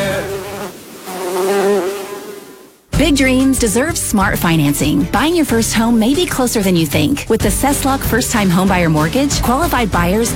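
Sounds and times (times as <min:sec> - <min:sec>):
bee buzzing sound effect: 0:00.0 - 0:02.9
speech: 0:03.0 - 0:10.3.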